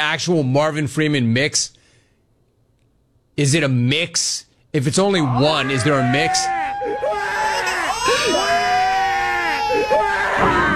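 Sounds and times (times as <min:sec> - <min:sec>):
speech: 0:00.0 - 0:01.8, 0:03.4 - 0:07.2
sports fan crying loudly: 0:05.4 - 0:10.5.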